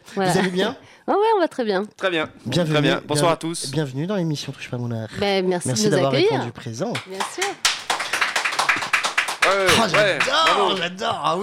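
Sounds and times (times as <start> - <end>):
speech: 0.2 - 7.7, 9.5 - 11.4
audience applause at a live show: 7.2 - 11.0.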